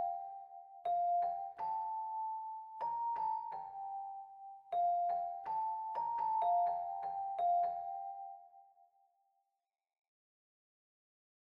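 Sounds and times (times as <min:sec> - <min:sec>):
piano: 0:00.0 - 0:08.9.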